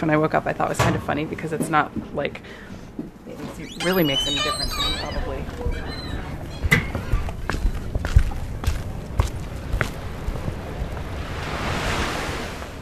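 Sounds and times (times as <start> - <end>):
speech: 0.0 - 5.9
wind buffeting the microphone: 5.3 - 12.8
waves washing onto a small beach bordered by two short piers: 9.4 - 12.8.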